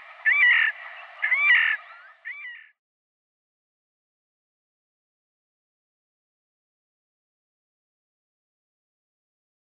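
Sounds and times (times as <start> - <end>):
Slavonian grebe calling: 0.0 - 2.8.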